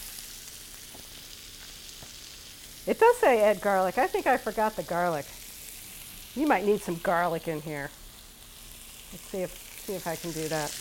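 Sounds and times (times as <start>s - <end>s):
food frying in a pan: 0.0s - 10.7s
speech: 2.9s - 5.4s, 6.4s - 8.0s, 9.1s - 10.7s.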